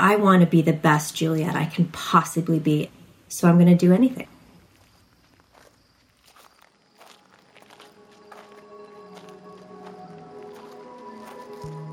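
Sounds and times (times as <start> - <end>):
speech: 0.0 - 4.4
footsteps on a gravel and stone ramp in the woods at night: 4.6 - 11.9.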